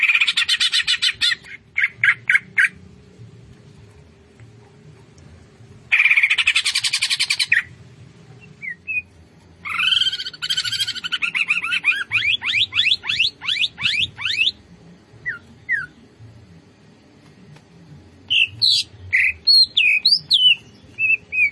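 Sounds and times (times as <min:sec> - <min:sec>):
Greater green leafbird singing fast chattering notes: 0:00.0 - 0:02.8, 0:05.9 - 0:07.7, 0:08.3 - 0:14.6, 0:15.2 - 0:16.1, 0:18.3 - 0:21.5.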